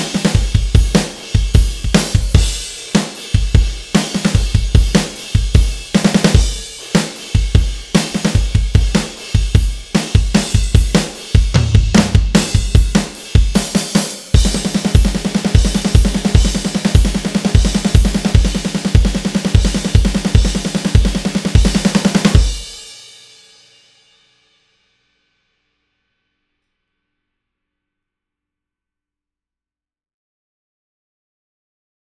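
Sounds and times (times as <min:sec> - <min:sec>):
drums: 0:00.0 - 0:25.0.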